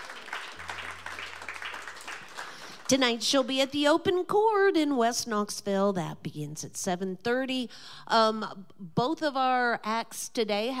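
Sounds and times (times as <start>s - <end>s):
audience applause for a performer at a live music show: 0.0s - 3.0s
speech: 2.9s - 10.7s.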